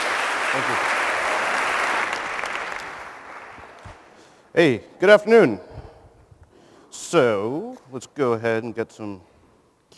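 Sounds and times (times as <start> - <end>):
conference audience applauding a keynote speaker: 0.0 - 4.2
speech: 0.5 - 1.0, 4.6 - 5.7, 7.1 - 9.3.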